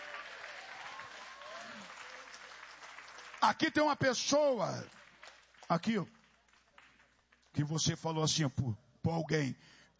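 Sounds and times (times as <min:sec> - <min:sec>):
audience clapping hands: 0:00.0 - 0:07.7
speech: 0:03.4 - 0:05.0, 0:05.7 - 0:06.2, 0:07.6 - 0:09.8.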